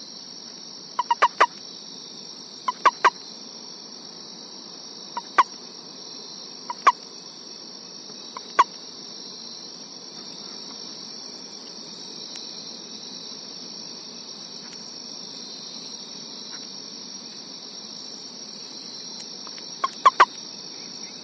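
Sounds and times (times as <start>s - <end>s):
central Formosan toad calling: 1.0s - 1.6s, 2.6s - 3.2s, 5.2s - 5.6s, 6.7s - 7.0s, 8.3s - 8.8s, 19.4s - 20.4s.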